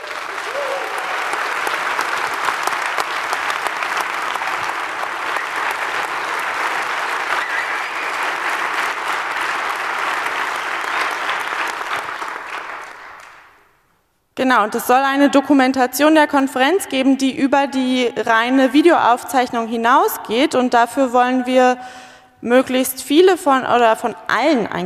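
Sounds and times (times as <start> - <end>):
large audience applause: 0.0 - 13.6
speech: 14.4 - 24.8.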